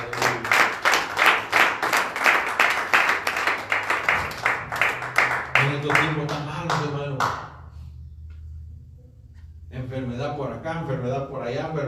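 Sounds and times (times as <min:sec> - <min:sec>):
audience applause: 0:00.0 - 0:06.4
speech: 0:10.0 - 0:11.8.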